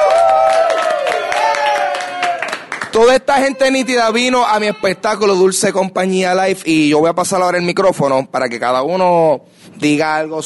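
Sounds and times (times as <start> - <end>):
cheering and whoops: 0.0 - 2.7
crowd applauding: 0.0 - 4.2
speech: 3.0 - 10.4.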